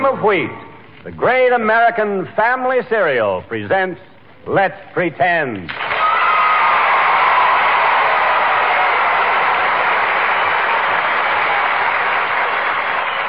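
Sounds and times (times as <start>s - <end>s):
speech: 0.2s - 5.8s
studio audience applause: 5.7s - 13.2s.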